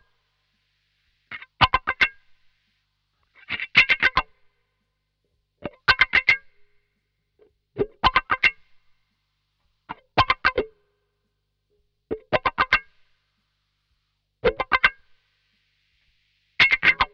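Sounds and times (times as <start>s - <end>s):
funk wah guitar at 112 BPM: 1.3s - 2.4s, 3.3s - 4.4s, 5.6s - 6.7s, 7.8s - 8.9s, 9.9s - 10.7s, 12.1s - 13.0s, 14.4s - 15.1s, 16.6s - 17.1s.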